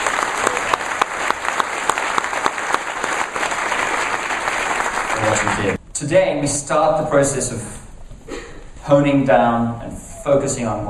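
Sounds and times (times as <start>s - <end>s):
large audience applause: 0.0s - 5.8s
speech: 5.6s - 7.8s, 8.9s - 10.8s.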